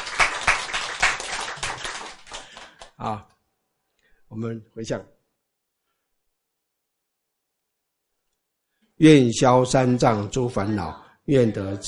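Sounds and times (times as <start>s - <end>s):
scattered hand claps from listeners at a Buddhist teaching: 0.0s - 3.0s
speech: 3.0s - 3.3s, 4.3s - 5.2s, 9.0s - 11.8s.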